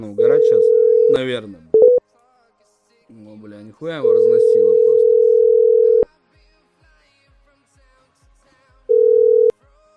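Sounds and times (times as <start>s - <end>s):
speech: 0.0s - 1.8s, 3.1s - 5.2s
telephone ringback tone while dialing a number: 0.0s - 2.0s, 4.0s - 6.1s, 8.9s - 9.5s.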